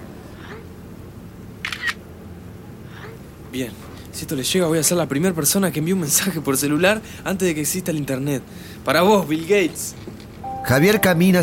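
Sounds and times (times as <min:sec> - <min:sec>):
camera shutter taking a photo: 0:01.6 - 0:02.0
speech: 0:03.5 - 0:11.4.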